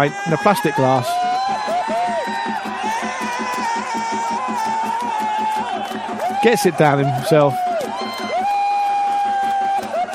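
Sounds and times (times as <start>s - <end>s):
speech: 0.0s - 1.3s, 6.4s - 7.6s
crowd cheering wildly: 0.0s - 10.1s.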